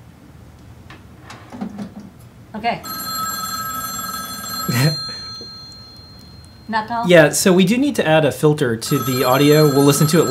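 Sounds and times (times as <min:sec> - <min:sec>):
speech: 0:02.6 - 0:03.1, 0:06.7 - 0:10.2
telephone ringing: 0:02.8 - 0:06.9, 0:08.8 - 0:10.2.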